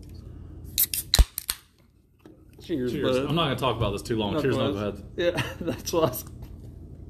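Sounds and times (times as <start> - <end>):
can of coffee cracking open: 0.8 - 1.7
speech: 2.7 - 6.4.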